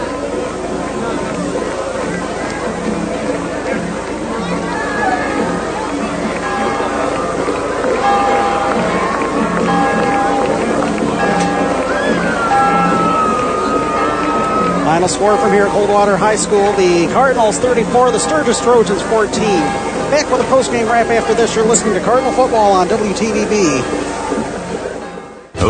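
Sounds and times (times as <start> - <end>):
crowd noise and cheering voices: 0.0 - 25.6
victory bell ringing after football game: 6.4 - 24.2
speech: 15.2 - 24.1.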